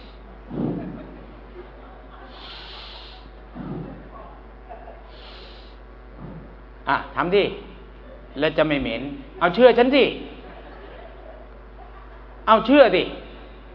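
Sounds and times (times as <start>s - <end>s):
deep long breaths: 0.0s - 0.4s, 2.2s - 3.4s, 5.1s - 5.9s
laughter: 0.3s - 5.5s, 8.0s - 8.4s, 9.3s - 12.4s
speech: 6.9s - 7.7s, 8.4s - 10.3s, 12.5s - 13.2s.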